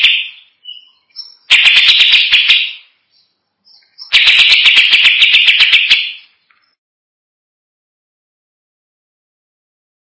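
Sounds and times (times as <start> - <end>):
greater green leafbird song of harsh pulsing buzzy rasps: 0.0 - 6.8.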